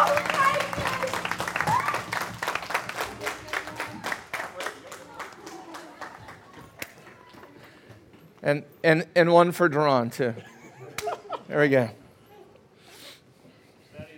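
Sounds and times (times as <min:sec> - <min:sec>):
audience cheering and clapping: 0:00.0 - 0:07.3
speech: 0:08.4 - 0:10.5, 0:11.5 - 0:12.0.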